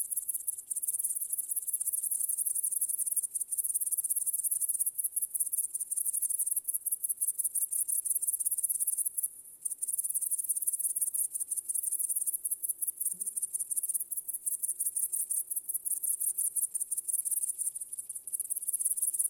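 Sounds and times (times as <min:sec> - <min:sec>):
cricket chorus: 0:00.0 - 0:19.2.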